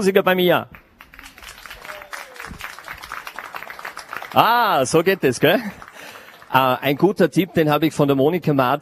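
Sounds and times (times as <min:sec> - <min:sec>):
speech: 0:00.0 - 0:00.8, 0:04.4 - 0:05.8, 0:06.5 - 0:08.8
audience applause: 0:01.0 - 0:07.3
audience cheers and whistles: 0:01.2 - 0:03.1.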